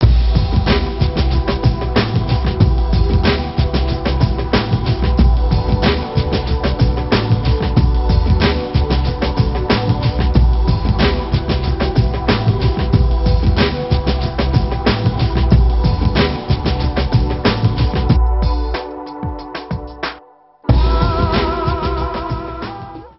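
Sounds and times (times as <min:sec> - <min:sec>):
instrumental music: 0:00.0 - 0:23.1.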